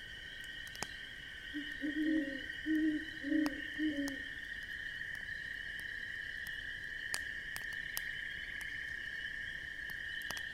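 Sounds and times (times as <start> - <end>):
campfire crackling: 0.0 - 10.5
steady insect chorus: 0.0 - 10.5
owl hooting: 1.6 - 4.2.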